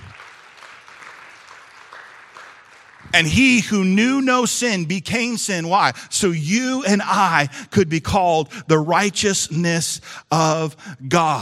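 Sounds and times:
audience applause: 0.0s - 3.2s
speech: 3.1s - 11.4s.

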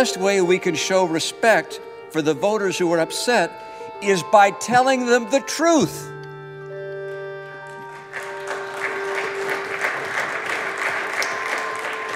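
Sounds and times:
speech: 0.0s - 6.1s
bipartisan applause on the Senate floor: 7.1s - 12.1s.

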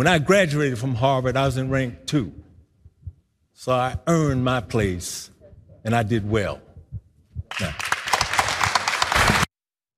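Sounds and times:
speech: 0.0s - 2.4s, 3.6s - 6.6s, 7.5s - 7.9s
audience applause: 7.5s - 9.5s.

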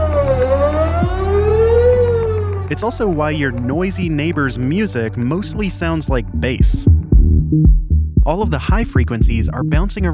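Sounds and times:
sweeping tornado siren: 0.0s - 4.3s
speech: 2.7s - 10.1s.

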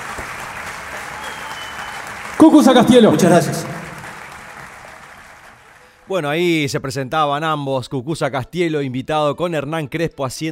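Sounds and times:
audience applause: 0.0s - 5.8s
speech: 2.4s - 3.7s, 6.1s - 10.5s.

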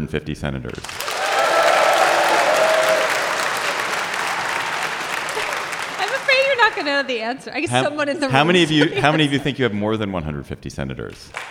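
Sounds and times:
speech: 0.0s - 1.1s, 6.7s - 11.4s
audience clapping: 0.8s - 7.8s
laughter: 1.1s - 10.2s.

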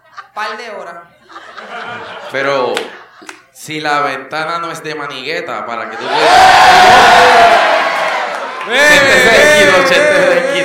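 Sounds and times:
speech: 0.4s - 7.8s, 8.6s - 10.6s
laughter: 1.1s - 3.5s, 8.5s - 10.6s
studio audience cheering and whooping: 6.0s - 10.6s.

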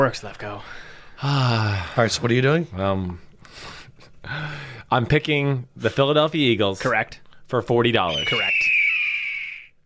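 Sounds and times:
speech: 0.0s - 8.6s
peregrine falcon screech: 8.1s - 9.7s.

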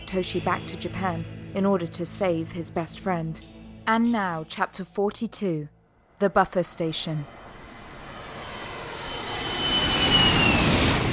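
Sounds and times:
speech: 0.1s - 7.4s
jet aircraft roaring at JFK Airport's Terminal 7: 7.2s - 11.1s.

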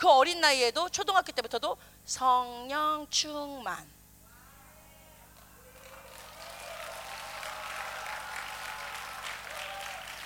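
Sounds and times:
speech: 0.0s - 4.0s
faint steady low hum: 0.0s - 10.2s
audience applause: 5.6s - 10.2s.

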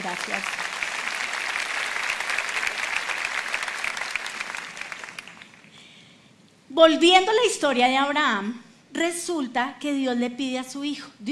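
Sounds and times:
speech: 0.0s - 0.7s, 6.8s - 11.3s
audience applause: 0.0s - 5.8s.

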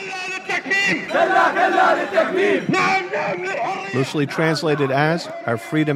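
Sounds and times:
crowd of protesters chanting at a street protest: 0.6s - 4.8s
speech: 0.9s - 5.9s.

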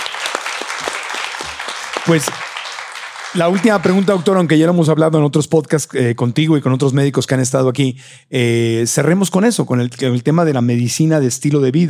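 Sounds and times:
crowd applauding: 0.0s - 4.7s
speech: 2.0s - 2.5s, 3.3s - 11.8s.

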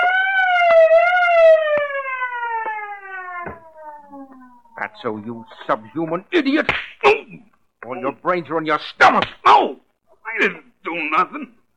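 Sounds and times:
truck alarm system blaring with an electronic wail: 0.0s - 6.2s
sharp knocks: 3.4s - 3.7s
speech: 5.0s - 7.2s, 8.0s - 9.8s, 10.4s - 11.6s.

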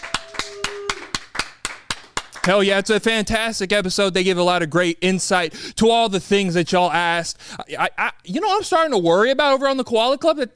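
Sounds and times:
round of applause: 0.0s - 2.8s
speech: 2.4s - 10.5s.

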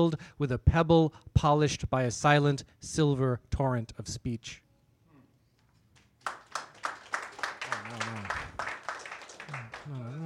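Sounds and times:
speech: 0.0s - 4.6s
audience applause: 6.2s - 10.2s.

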